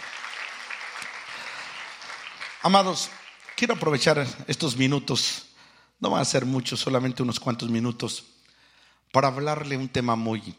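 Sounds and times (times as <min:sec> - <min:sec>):
church congregation applause as an offering of praise during a service: 0:00.0 - 0:04.8
speech: 0:02.6 - 0:08.4, 0:09.1 - 0:10.5.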